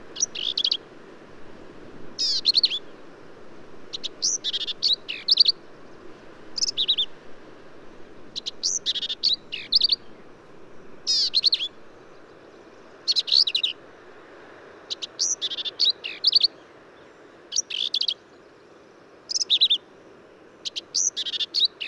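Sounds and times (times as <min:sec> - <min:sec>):
Black-capped Vireo: 0:00.2 - 0:00.8, 0:02.2 - 0:03.0, 0:03.9 - 0:06.0, 0:06.6 - 0:07.1, 0:08.4 - 0:10.3, 0:11.1 - 0:13.8, 0:14.9 - 0:19.8, 0:20.6 - 0:21.8.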